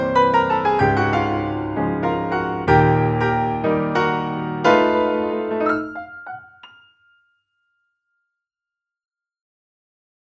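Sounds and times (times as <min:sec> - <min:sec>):
Clavia Nord Grand Velvet Grand piano: 0:00.0 - 0:07.3.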